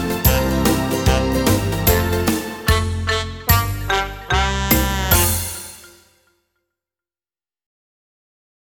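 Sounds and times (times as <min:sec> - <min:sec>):
recorder playing a children's song: 0:00.0 - 0:06.3.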